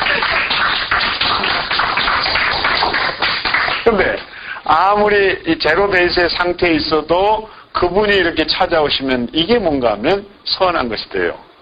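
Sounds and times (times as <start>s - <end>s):
crowd clapping: 0.0s - 4.5s
speech: 3.9s - 11.4s.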